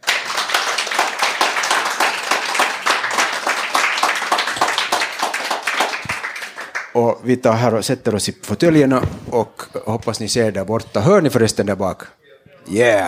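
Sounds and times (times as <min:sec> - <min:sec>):
applause: 0:00.0 - 0:07.0
speech: 0:07.0 - 0:13.0.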